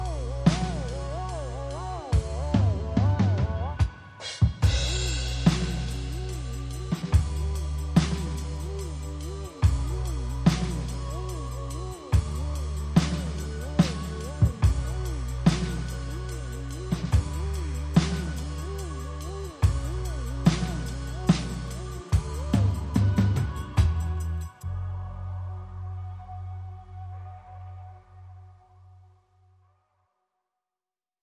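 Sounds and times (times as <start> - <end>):
drums: 0.0 - 24.6.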